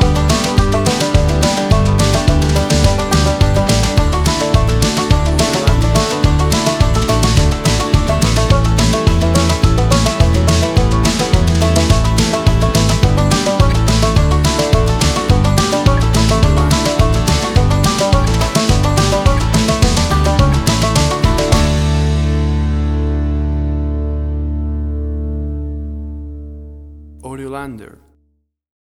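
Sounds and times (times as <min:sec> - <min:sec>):
banjo fast picking country music: 0:00.0 - 0:25.4.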